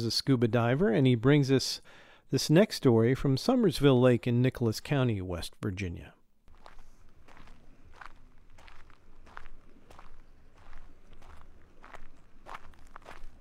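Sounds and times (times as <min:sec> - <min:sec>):
speech: 0:00.0 - 0:06.2
footsteps on gravel or dry ground: 0:06.5 - 0:13.4.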